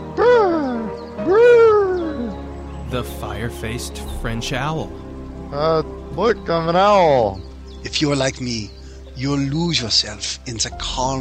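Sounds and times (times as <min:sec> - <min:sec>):
voice imitating a robin call: 0:00.2 - 0:05.8
speech: 0:02.9 - 0:11.1.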